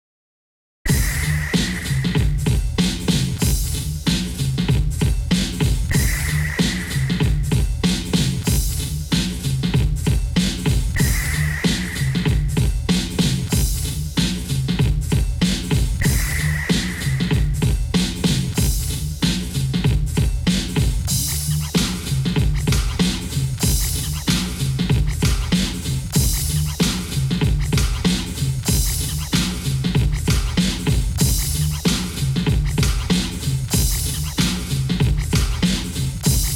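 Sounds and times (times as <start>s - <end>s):
drum: 0.9s - 36.5s.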